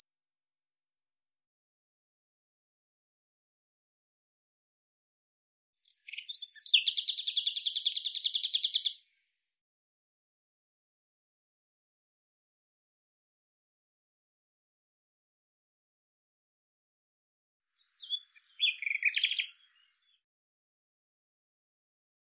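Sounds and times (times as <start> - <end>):
bird singing buzzy chirps: 0.0 - 1.0, 5.8 - 9.0, 17.7 - 20.2.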